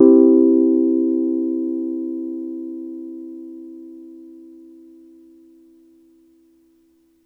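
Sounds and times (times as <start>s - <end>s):
soft Wurlitzer electric piano in a major key: 0.0s - 5.6s.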